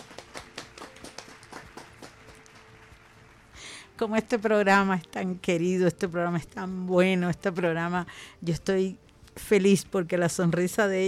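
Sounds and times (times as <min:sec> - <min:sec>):
few people clapping: 0:00.0 - 0:03.6
speech: 0:04.0 - 0:11.0.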